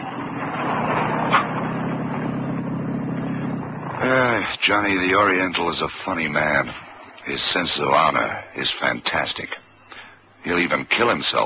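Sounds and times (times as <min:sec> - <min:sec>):
small car pulling up: 0:00.0 - 0:04.4
speech: 0:04.1 - 0:09.6, 0:10.4 - 0:11.4.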